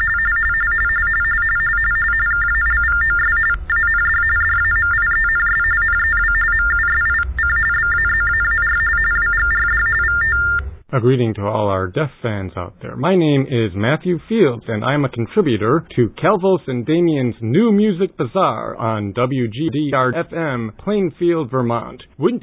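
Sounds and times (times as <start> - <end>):
electronic tones: 0.0 - 10.8
speech: 11.0 - 22.4.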